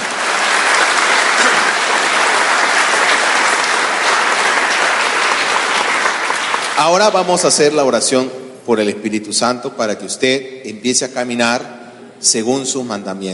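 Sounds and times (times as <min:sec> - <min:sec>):
audience applause: 0:00.0 - 0:07.4
speech: 0:06.8 - 0:13.3.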